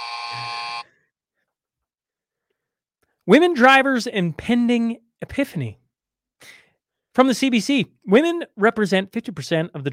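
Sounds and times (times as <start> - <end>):
loud steady electronic buzzer: 0.0 - 0.9
speech: 3.3 - 5.8, 7.2 - 9.9.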